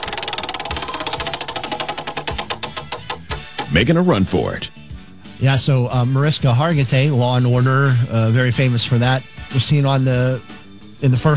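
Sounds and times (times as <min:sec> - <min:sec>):
prize wheel spun by hand clicking: 0:00.0 - 0:04.6
speech: 0:03.7 - 0:04.8, 0:05.4 - 0:11.3.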